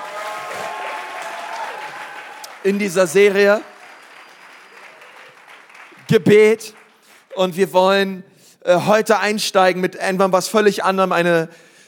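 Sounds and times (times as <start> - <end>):
audience applause: 0.0 - 7.4
speech: 2.6 - 3.7, 6.1 - 6.8, 7.4 - 11.7.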